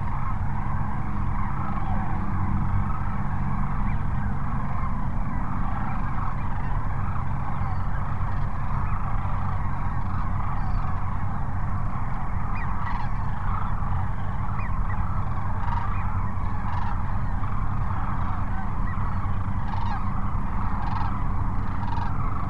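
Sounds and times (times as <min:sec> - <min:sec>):
sandhill cranes giving overlapping rolling calls at Cochise Lakes: 0:00.0 - 0:22.4.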